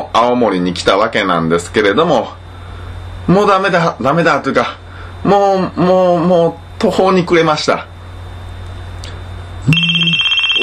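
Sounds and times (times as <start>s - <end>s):
speech: 0.2s - 2.4s, 3.2s - 7.9s
alarm clock ringing: 9.7s - 10.6s.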